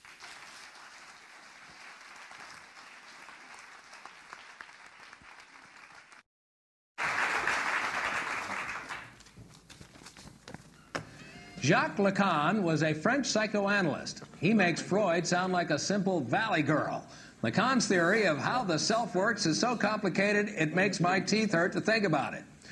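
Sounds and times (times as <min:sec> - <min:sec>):
audience applause welcoming two speakers at a talk: 0:00.0 - 0:06.2, 0:07.0 - 0:09.8
speech: 0:11.6 - 0:22.5.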